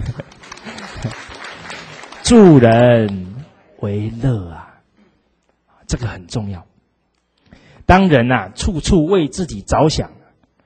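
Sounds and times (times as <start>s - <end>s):
audience applause: 0.0s - 3.0s
speech: 2.3s - 4.7s, 5.9s - 6.7s, 7.9s - 10.2s.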